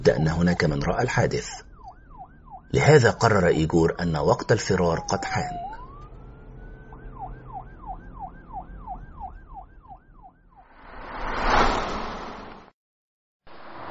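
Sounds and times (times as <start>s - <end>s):
speech: 0.0s - 1.7s, 2.7s - 5.8s
police car sirens wailing: 0.0s - 10.6s
broad rushing swell: 10.7s - 12.7s.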